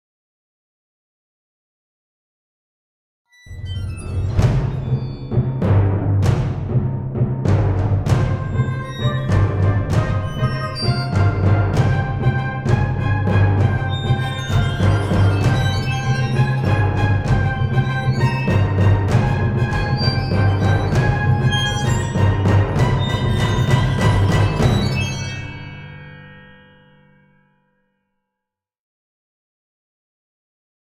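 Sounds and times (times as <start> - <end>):
tense music layer: 3.8 - 25.5.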